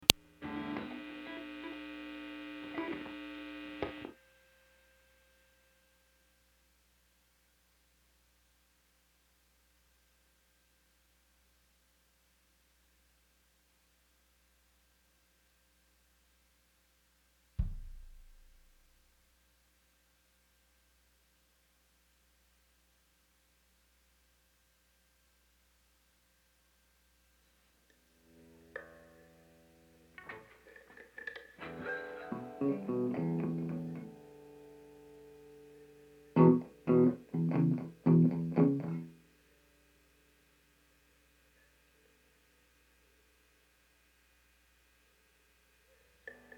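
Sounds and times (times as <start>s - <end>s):
ambient guitar: 0.0s - 4.2s, 28.1s - 39.6s.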